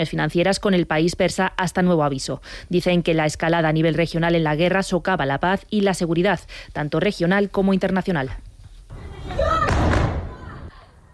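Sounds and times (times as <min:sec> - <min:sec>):
speech: 0:00.0 - 0:09.5
Russian missile bombing of Kyiv, Ukraine: 0:09.4 - 0:10.7.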